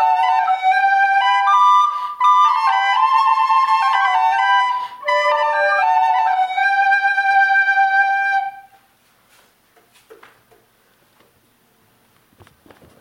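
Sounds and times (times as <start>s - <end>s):
recorder playing a hymn: 0.0s - 8.8s.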